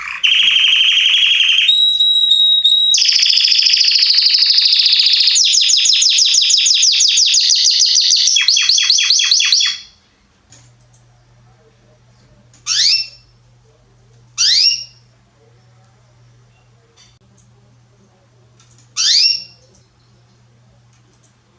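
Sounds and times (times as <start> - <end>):
Belgian canary singing: 0.0 - 10.0, 12.6 - 13.4, 14.4 - 15.1, 19.0 - 19.7.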